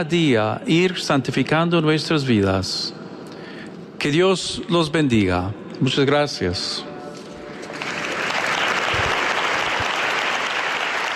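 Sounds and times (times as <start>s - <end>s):
speech: 0.0s - 3.0s, 4.0s - 6.9s
applause from a Spanish-speaking audience: 7.7s - 11.1s.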